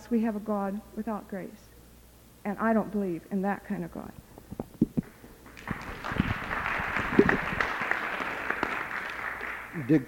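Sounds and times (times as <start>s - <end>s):
speech: 0.1s - 1.7s, 2.4s - 4.2s, 9.8s - 10.0s
audience applause: 5.5s - 9.9s.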